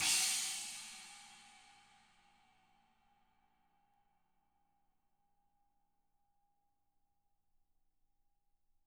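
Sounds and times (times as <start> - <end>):
china crash cymbal: 0.0 - 2.1.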